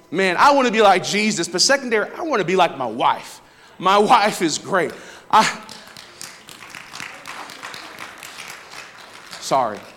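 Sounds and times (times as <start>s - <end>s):
speech: 0.1s - 5.6s, 9.5s - 9.9s
person clapping: 4.9s - 9.9s.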